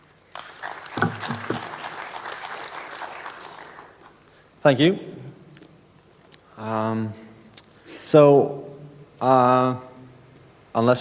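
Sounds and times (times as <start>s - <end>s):
crowd applauding: 0.3s - 4.2s
speech: 4.6s - 5.1s, 6.7s - 7.2s, 8.1s - 8.6s, 9.2s - 9.9s, 10.8s - 10.9s.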